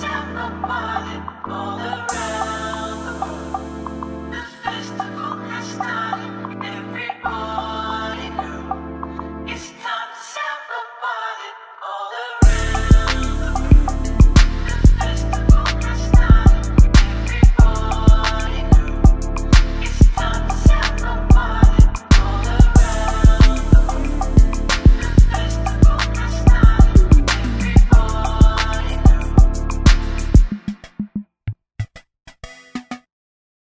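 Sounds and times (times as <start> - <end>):
samba music: 12.4 - 20.8, 21.6 - 31.2.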